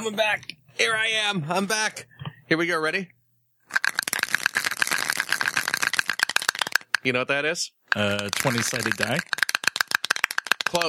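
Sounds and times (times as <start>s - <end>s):
speech: 0.0s - 3.2s, 7.0s - 9.4s
gallstone rattling in plastic specimen cup: 3.7s - 7.1s, 7.9s - 10.8s.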